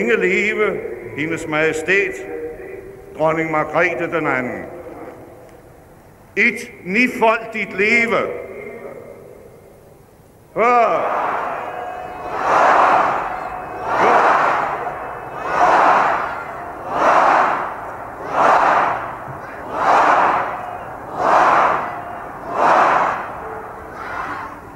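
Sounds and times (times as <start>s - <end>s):
speech: 0.0s - 2.4s, 3.2s - 4.8s, 6.4s - 8.4s, 10.6s - 11.3s
crowd cheering and shouting hurrahs: 10.6s - 24.7s.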